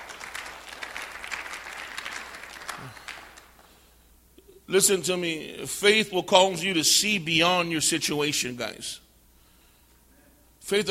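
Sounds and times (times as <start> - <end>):
audience clapping: 0.0 - 3.8
speech: 4.7 - 9.0, 10.7 - 10.8.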